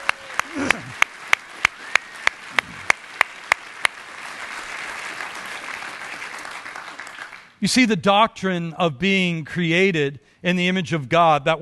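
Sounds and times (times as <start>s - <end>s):
audience applause: 0.0s - 7.6s
speech: 7.6s - 11.6s.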